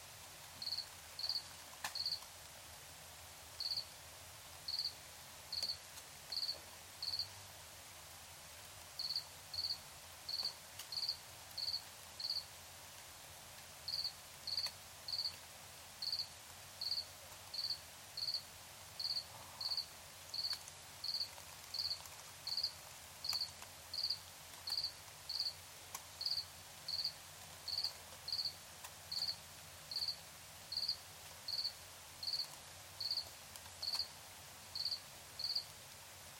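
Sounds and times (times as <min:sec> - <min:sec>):
background hiss: 0:00.0 - 0:36.3
cricket chirping: 0:00.6 - 0:02.2, 0:03.6 - 0:03.9, 0:04.7 - 0:07.3, 0:09.0 - 0:12.5, 0:13.9 - 0:15.4, 0:16.0 - 0:18.4, 0:19.0 - 0:25.6, 0:26.2 - 0:34.1, 0:34.8 - 0:35.7.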